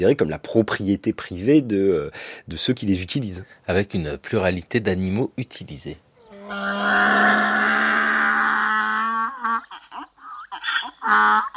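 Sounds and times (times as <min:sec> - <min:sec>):
speech: 0:00.0 - 0:07.4, 0:11.1 - 0:11.5
donkey braying: 0:06.2 - 0:11.5.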